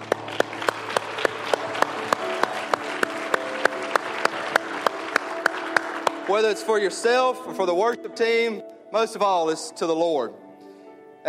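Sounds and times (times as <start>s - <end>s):
audience applause: 0.0s - 6.9s
speech: 6.3s - 10.4s.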